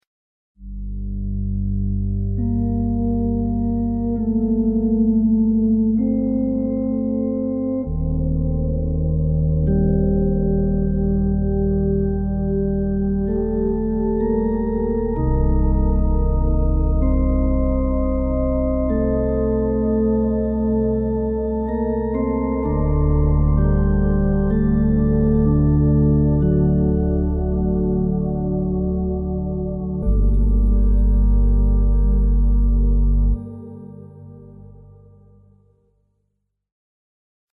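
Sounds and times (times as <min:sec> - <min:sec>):
organ: 0:01.4 - 0:35.4.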